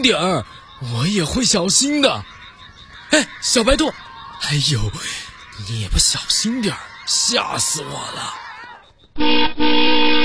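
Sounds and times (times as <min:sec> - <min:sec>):
speech: 0:00.0 - 0:02.4, 0:03.1 - 0:08.4, 0:09.2 - 0:10.2
laughter: 0:00.0 - 0:09.1
vintage car honking its horn: 0:09.2 - 0:10.2.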